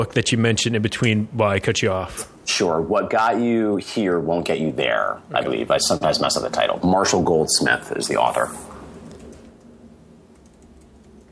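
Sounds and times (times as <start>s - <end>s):
speech: 0.0s - 8.7s
soft hiss: 0.0s - 11.3s
typing on a computer keyboard: 8.9s - 9.7s, 10.3s - 11.3s.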